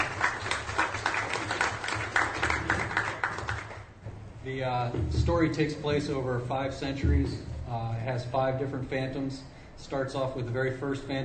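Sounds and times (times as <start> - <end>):
audience applause: 0.0 - 3.9
speech: 4.5 - 11.2.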